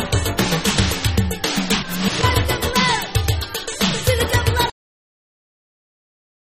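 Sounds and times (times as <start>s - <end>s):
vocal cheer: 0.2s - 4.7s.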